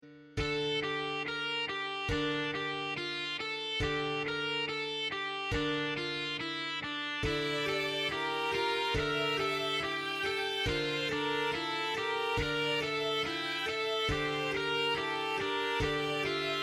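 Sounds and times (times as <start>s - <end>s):
electric guitar: 0.4s - 16.6s.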